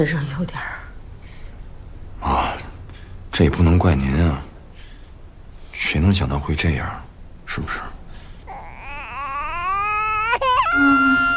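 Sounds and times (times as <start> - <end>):
speech: 0.0 - 0.8, 3.4 - 4.5, 5.8 - 7.9
baby crying: 8.5 - 11.3.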